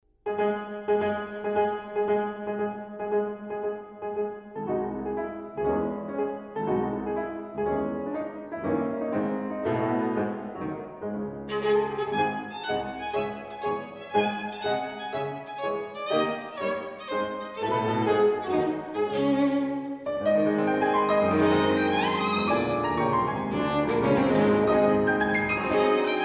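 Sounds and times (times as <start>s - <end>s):
piano in a duo sonata: 0.2s - 26.2s
violin in a duo sonata: 11.5s - 26.2s.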